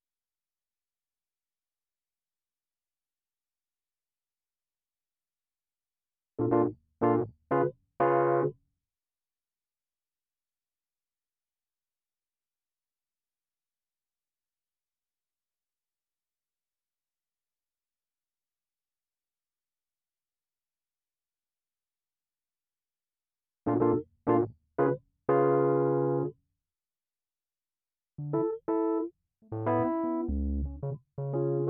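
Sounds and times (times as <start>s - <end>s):
keyboard music: 6.4s - 8.5s, 23.7s - 26.3s, 28.2s - 31.6s.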